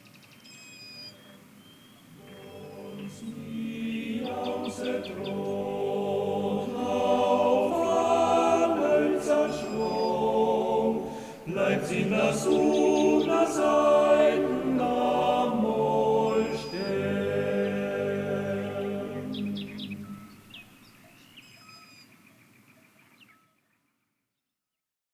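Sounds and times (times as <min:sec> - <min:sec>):
soundscape: 0:02.0 - 0:21.0.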